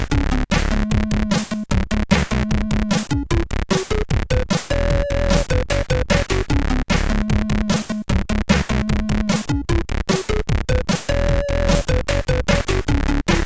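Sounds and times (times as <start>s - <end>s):
chiptune music on a SID sound chip: 0.2s - 13.4s.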